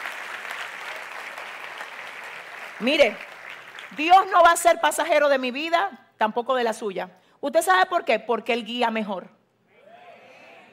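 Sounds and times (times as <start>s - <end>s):
church congregation applauding during a sermon: 0.0s - 4.3s
speech: 2.8s - 3.3s, 3.9s - 9.4s.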